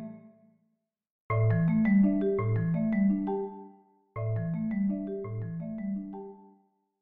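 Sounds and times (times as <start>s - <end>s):
marimba duet: 1.3s - 6.5s.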